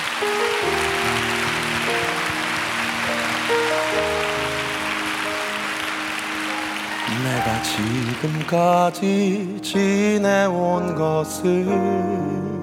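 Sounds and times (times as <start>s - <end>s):
audience applause: 0.0s - 9.2s
speech: 7.6s - 12.5s.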